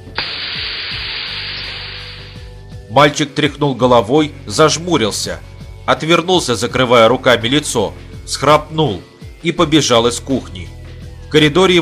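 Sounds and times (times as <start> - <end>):
tiny gas canister spraying: 0.0 - 2.6
speech: 2.9 - 11.8.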